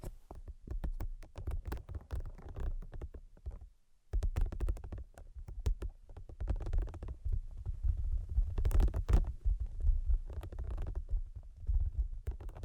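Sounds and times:
quick dense 3D tapping clicks: 0.6s - 7.1s
soft low thumping: 4.2s - 12.6s.

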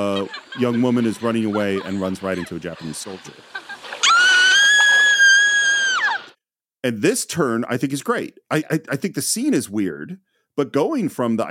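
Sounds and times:
speech: 0.0s - 3.6s, 6.8s - 11.4s
laughter: 0.0s - 5.2s
woman screaming: 4.0s - 6.4s.

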